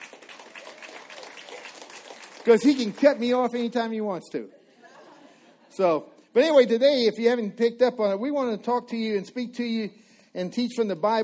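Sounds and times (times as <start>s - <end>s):
crowd applauding: 0.0s - 4.0s
speech: 2.4s - 4.6s, 5.8s - 11.2s
laughter: 4.5s - 5.8s.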